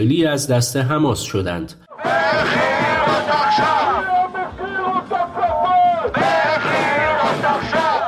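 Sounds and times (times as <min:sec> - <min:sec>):
speech: 0:00.0 - 0:04.0
crowd of thousands of Israelis at a mass demonstration in Tel Aviv: 0:01.9 - 0:08.0.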